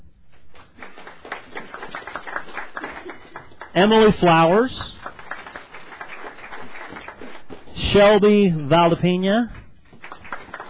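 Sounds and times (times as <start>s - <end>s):
audience clapping: 0.3s - 7.8s, 9.9s - 10.6s
speech: 3.8s - 4.9s, 7.9s - 9.6s.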